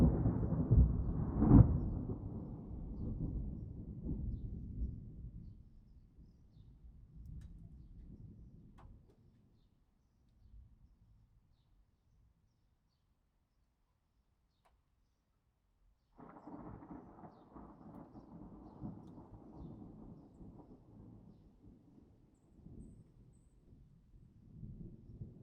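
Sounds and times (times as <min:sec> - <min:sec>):
thunder: 0:00.0 - 0:05.4, 0:16.2 - 0:23.1.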